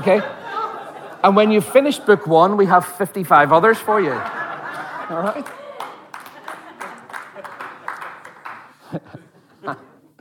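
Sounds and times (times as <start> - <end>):
speech: 0.0 - 0.4, 1.2 - 4.4, 5.1 - 5.6, 8.9 - 9.9
laughter: 0.0 - 2.8, 3.6 - 10.1
audience women clapping: 4.2 - 8.8.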